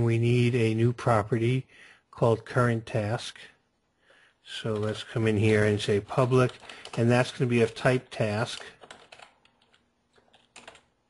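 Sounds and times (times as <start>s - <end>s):
speech: 0.0s - 3.5s, 4.5s - 8.8s
quiet typing on a computer keyboard: 6.2s - 11.0s.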